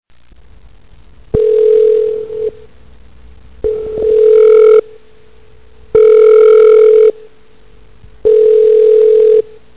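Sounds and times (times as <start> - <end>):
phone ringing: 1.4 - 2.5, 3.7 - 4.8, 6.0 - 7.1, 8.3 - 9.5.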